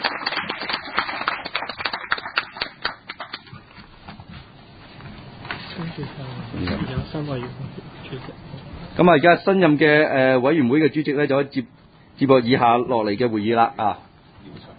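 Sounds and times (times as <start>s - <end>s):
group applauding a new chairman: 0.0s - 3.8s
speech: 6.0s - 14.6s.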